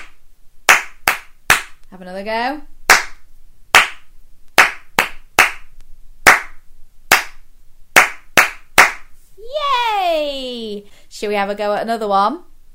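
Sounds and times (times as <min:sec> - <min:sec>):
hand claps tapping back a rhythm in a listen-and-repeat game: 0:00.7 - 0:01.8, 0:02.9 - 0:03.2, 0:03.8 - 0:04.0, 0:04.6 - 0:05.7, 0:06.3 - 0:07.4, 0:08.0 - 0:09.0
speech: 0:01.9 - 0:02.7, 0:11.1 - 0:12.5.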